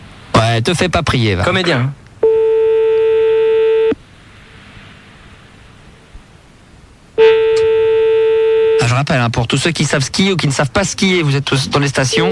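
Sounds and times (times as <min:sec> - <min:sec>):
speech: 0:00.4 - 0:02.0, 0:09.0 - 0:12.3
telephone line signal tone: 0:02.2 - 0:04.0, 0:07.2 - 0:08.9, 0:12.1 - 0:12.3.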